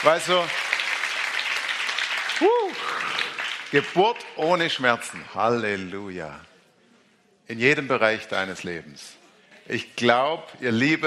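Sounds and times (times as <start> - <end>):
speech: 0.0 - 0.6, 2.4 - 6.5, 7.5 - 11.0
congregational applause at a church conference: 0.0 - 4.6.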